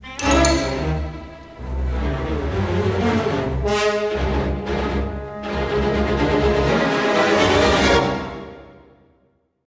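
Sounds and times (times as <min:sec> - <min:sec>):
tense music: 0:00.0 - 0:08.8.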